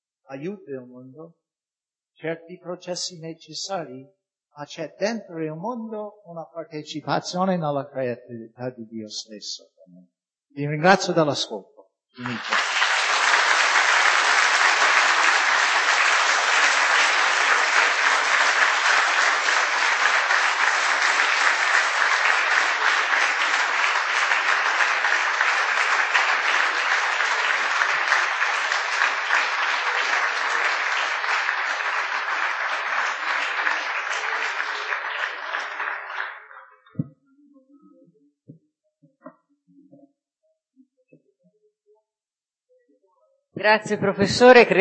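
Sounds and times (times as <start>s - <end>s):
speech: 0.3s - 1.4s, 2.2s - 12.7s, 43.7s - 44.7s
audience applause: 12.2s - 36.8s.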